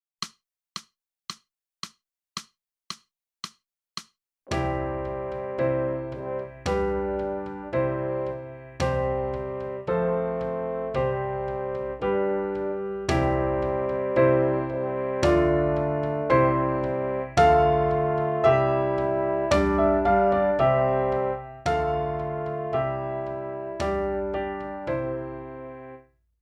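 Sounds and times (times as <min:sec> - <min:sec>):
saxophone: 0:04.9 - 0:26.0.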